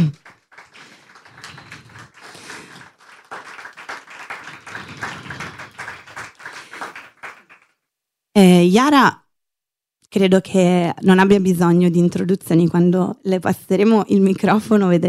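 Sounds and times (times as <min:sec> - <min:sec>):
audience applause: 0:00.0 - 0:07.7
speech: 0:08.4 - 0:09.2, 0:10.1 - 0:15.0.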